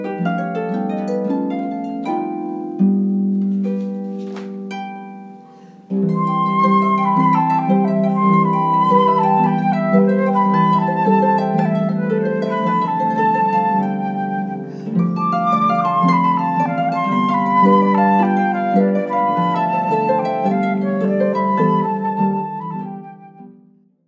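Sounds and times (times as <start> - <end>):
harp: 0.0 - 23.7
flute: 6.0 - 23.8.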